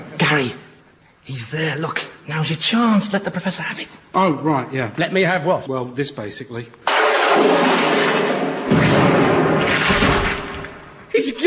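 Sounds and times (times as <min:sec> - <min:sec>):
speech: 0:00.3 - 0:00.6, 0:01.2 - 0:07.8, 0:11.2 - 0:11.4
explosion blowing someone to smithereens: 0:06.9 - 0:11.1.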